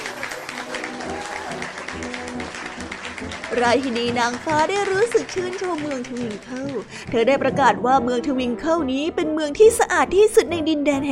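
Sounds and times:
cheering: 0:00.0 - 0:05.6
applause: 0:00.0 - 0:07.1
speech: 0:03.5 - 0:11.1.

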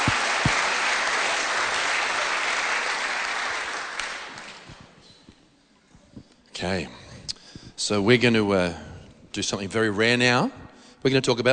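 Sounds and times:
audience clapping: 0:00.0 - 0:05.0
speech: 0:06.6 - 0:07.0, 0:07.8 - 0:11.5.

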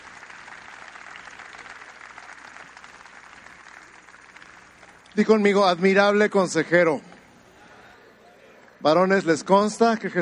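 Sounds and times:
crowd applauding: 0:00.0 - 0:05.8
speech: 0:05.2 - 0:07.1, 0:08.8 - 0:10.1.

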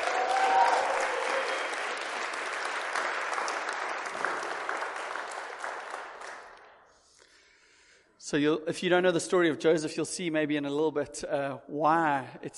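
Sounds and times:
audience clapping: 0:00.0 - 0:06.8
speech: 0:08.3 - 0:12.5.

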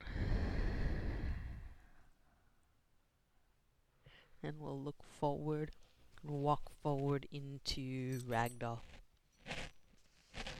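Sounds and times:
long slow breath in through the nose, out through mouth during yoga warm-up: 0:00.0 - 0:02.8, 0:03.9 - 0:04.4
speech: 0:04.4 - 0:09.0.

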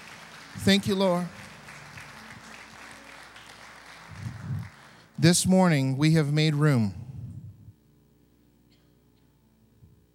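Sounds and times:
audience clapping: 0:00.0 - 0:05.4
speech: 0:00.6 - 0:01.4, 0:05.2 - 0:07.0.

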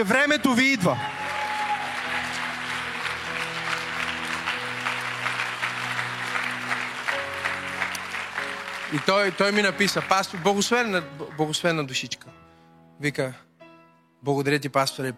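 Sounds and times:
speech: 0:00.0 - 0:01.2, 0:08.9 - 0:12.4, 0:13.0 - 0:13.5, 0:14.2 - 0:15.1
audience applauding: 0:00.0 - 0:12.0.

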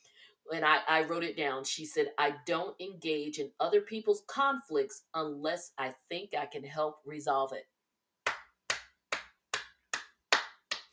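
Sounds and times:
speech: 0:00.5 - 0:07.7
round of applause: 0:08.3 - 0:10.9.

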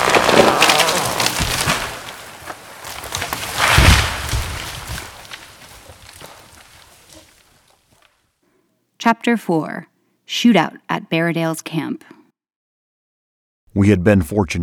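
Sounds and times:
giant oak falling: 0:00.0 - 0:08.2
speech: 0:09.0 - 0:12.2, 0:13.8 - 0:14.6.

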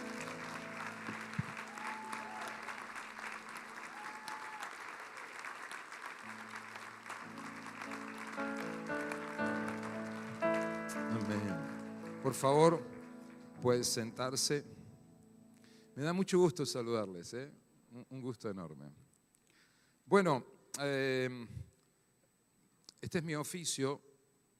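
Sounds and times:
audience applauding loudly: 0:00.0 - 0:14.0
speech: 0:12.3 - 0:12.9, 0:13.6 - 0:14.8, 0:16.0 - 0:19.0, 0:20.1 - 0:21.6, 0:23.1 - 0:24.1.

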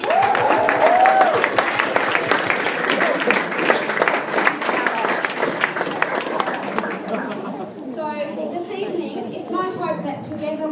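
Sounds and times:
audience clapping: 0:00.0 - 0:07.9
laughter: 0:02.5 - 0:10.6.

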